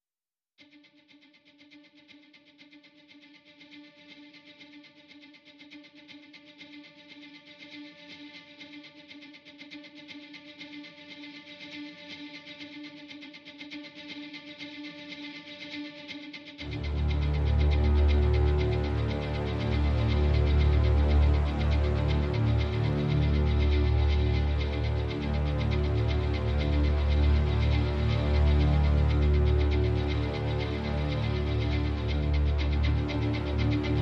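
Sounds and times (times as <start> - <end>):
strings playing: 16.6 - 34.0.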